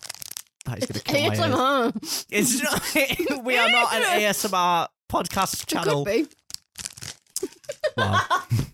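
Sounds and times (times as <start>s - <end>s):
chocolate wrappers rustling: 0.0s - 1.0s, 6.2s - 7.8s
speech: 0.7s - 6.4s, 8.0s - 8.6s
laughter: 7.4s - 8.6s.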